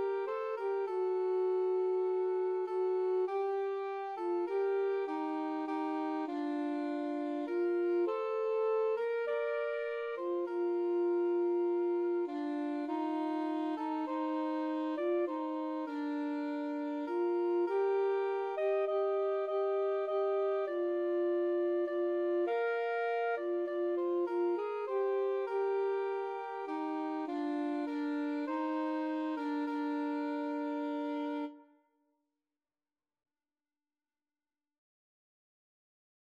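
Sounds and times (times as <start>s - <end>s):
three saxophones playing as a woodwind trio: 0.0s - 31.6s.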